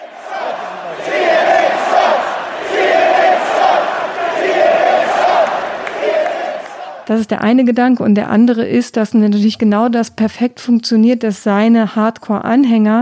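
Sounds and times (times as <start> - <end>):
rally crowd chanting in unison: 0.0 - 7.2
speech: 7.1 - 13.0.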